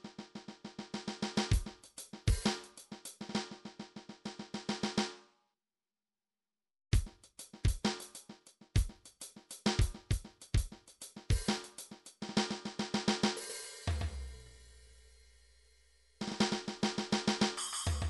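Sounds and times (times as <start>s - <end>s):
midi drums: 0.0s - 5.1s, 7.0s - 14.4s, 16.2s - 18.0s.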